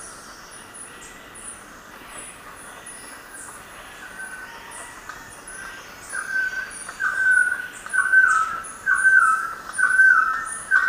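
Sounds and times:
golden-headed quetzal whistled calls: 6.1s - 10.8s.

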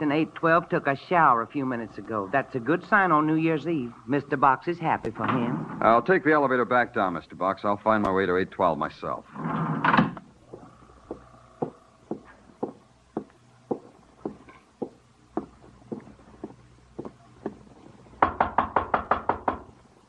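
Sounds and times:
speech: 0.0s - 9.6s
knocking on a hotel room door: 18.2s - 19.7s.

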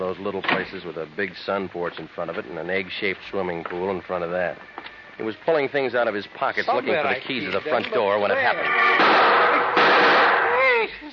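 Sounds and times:
speech: 0.1s - 9.3s
gunshot fired at a man at a front door: 9.0s - 10.5s.

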